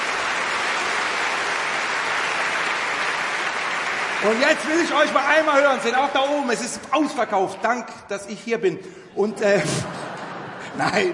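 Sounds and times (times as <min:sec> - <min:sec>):
audience applause: 0:00.0 - 0:07.4
speech: 0:04.2 - 0:10.0, 0:10.8 - 0:11.1
laughter: 0:09.2 - 0:11.1.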